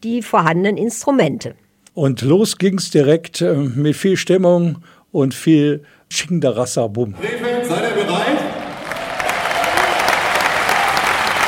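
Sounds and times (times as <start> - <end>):
speech: 0.0 - 8.0
audience applause: 7.2 - 11.4
faint cheering: 7.2 - 11.4.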